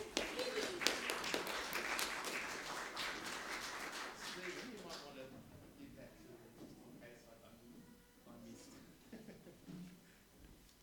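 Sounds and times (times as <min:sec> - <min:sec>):
audience clapping: 0:00.0 - 0:05.2.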